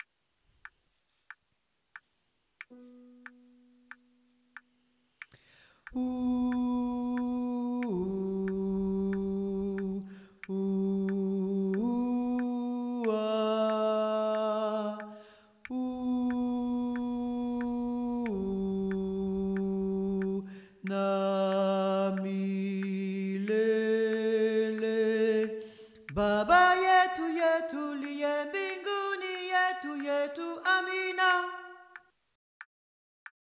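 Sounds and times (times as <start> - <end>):
tenor voices singing: 5.9 - 32.0.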